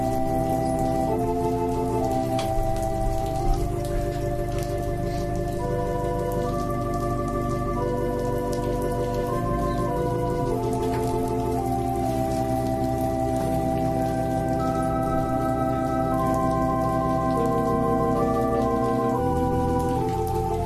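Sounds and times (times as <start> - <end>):
organ prelude for worship: 0.0 - 20.6.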